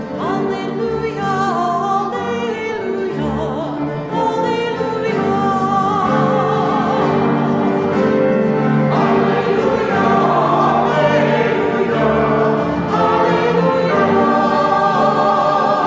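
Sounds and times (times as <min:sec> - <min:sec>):
Easter alleluia singing: 0:00.2 - 0:15.8.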